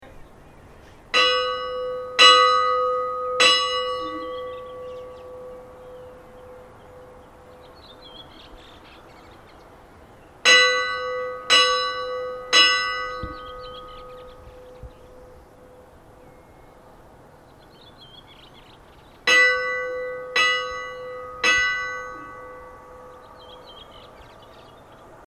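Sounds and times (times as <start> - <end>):
Kaupangskirkja church bells ringing: 1.1 - 17.6, 19.2 - 25.2.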